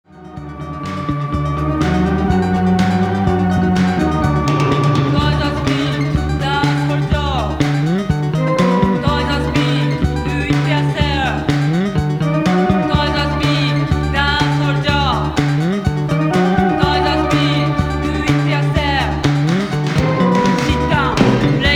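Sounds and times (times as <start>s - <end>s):
ethnic music: 0.0s - 21.7s.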